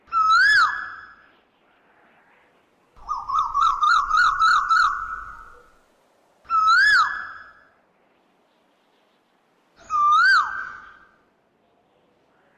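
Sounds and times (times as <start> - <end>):
Asian koel swooping and rising-falling whistled calls: 3.0 - 5.8, 6.5 - 7.6, 9.8 - 11.2.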